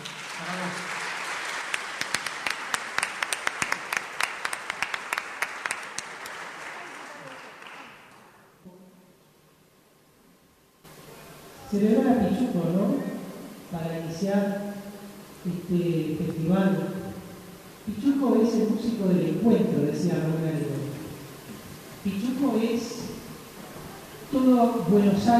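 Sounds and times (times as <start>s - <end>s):
audience applause: 0.0s - 8.5s
speech: 11.7s - 13.1s, 13.7s - 14.7s, 15.4s - 16.9s, 17.8s - 20.8s, 22.0s - 22.9s, 24.4s - 25.3s.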